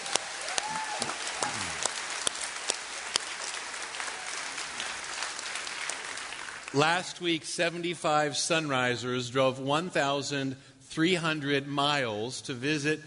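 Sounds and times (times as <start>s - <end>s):
church congregation applause welcoming back a mission team from Mexicali: 0.0s - 7.0s
speech: 6.8s - 13.0s.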